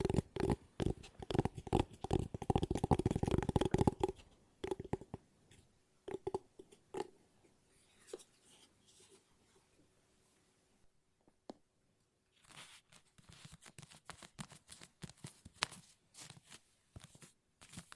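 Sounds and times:
fast tapping: 0:00.0 - 0:05.2.

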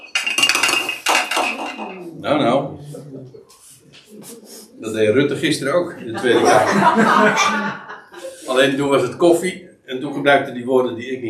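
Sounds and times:
glass handled and set down while taking a sip of water: 0:00.0 - 0:02.1
speech: 0:01.8 - 0:07.8, 0:08.5 - 0:11.2
laughter: 0:05.4 - 0:09.4.

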